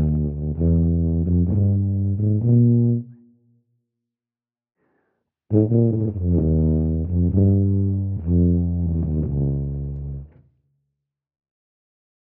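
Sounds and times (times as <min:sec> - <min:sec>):
tuba solo: 0:00.0 - 0:03.2, 0:05.5 - 0:10.3.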